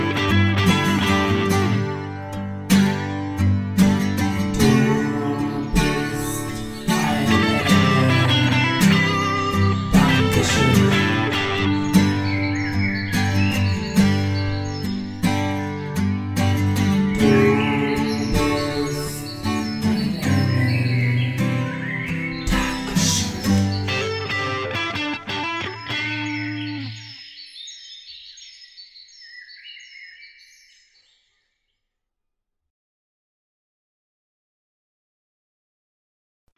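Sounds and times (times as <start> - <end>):
acoustic song: 0.0 - 27.4.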